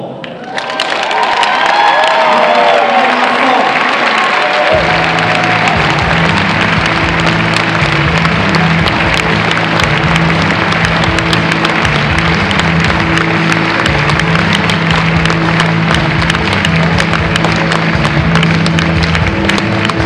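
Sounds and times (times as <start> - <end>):
loud sustained crowd applause: 0.2 - 20.0
cheering and whoops: 0.4 - 6.6.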